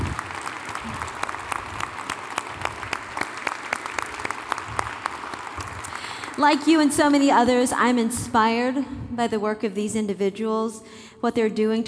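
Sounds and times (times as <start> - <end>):
audience round of applause: 0.0 - 6.6
speech: 6.4 - 11.8.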